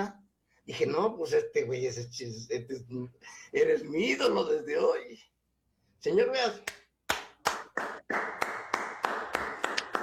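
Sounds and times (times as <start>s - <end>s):
speech: 0.0s - 5.4s, 6.0s - 6.8s, 7.8s - 8.5s
applause: 6.7s - 10.0s.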